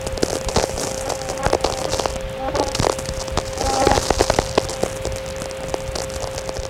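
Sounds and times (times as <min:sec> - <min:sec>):
insect: 0:00.1 - 0:06.5.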